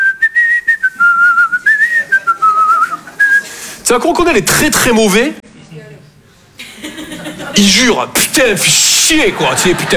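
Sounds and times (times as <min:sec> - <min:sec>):
person whistling a tune: 0:00.0 - 0:03.5
laughter: 0:01.6 - 0:03.7, 0:06.6 - 0:08.0, 0:08.6 - 0:09.9
speech: 0:03.9 - 0:05.4, 0:07.6 - 0:09.9.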